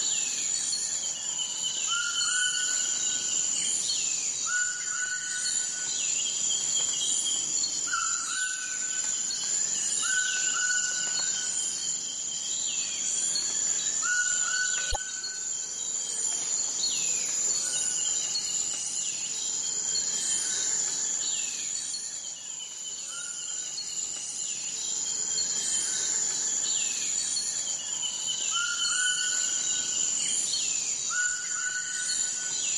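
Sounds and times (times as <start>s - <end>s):
Amazon forest ambience: 0.0s - 32.7s.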